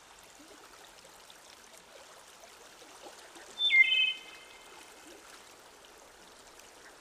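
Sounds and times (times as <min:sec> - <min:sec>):
mockingbird singing: 0:03.6 - 0:04.3.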